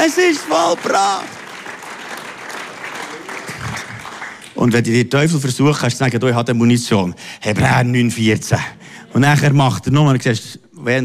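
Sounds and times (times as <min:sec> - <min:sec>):
speech: 0:00.0 - 0:01.4, 0:04.6 - 0:11.0
audience applause: 0:00.0 - 0:04.9.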